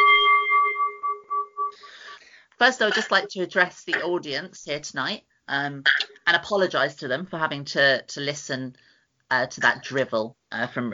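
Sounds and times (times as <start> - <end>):
bell ringing: 0.0 - 2.2
speech: 2.6 - 10.9.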